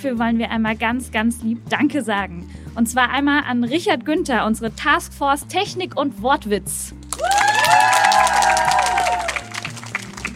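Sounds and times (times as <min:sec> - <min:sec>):
speech: 0:00.0 - 0:07.8
audience applause and cheering: 0:07.1 - 0:10.3.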